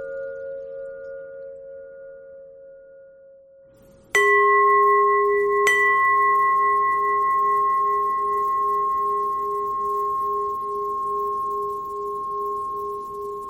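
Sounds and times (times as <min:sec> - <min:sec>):
bells ringing: 0:04.2 - 0:12.8.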